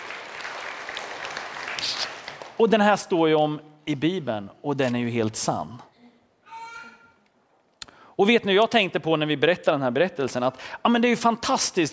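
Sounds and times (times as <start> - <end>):
audience applause: 0.0 - 2.6
speech: 1.8 - 5.9, 8.2 - 11.9.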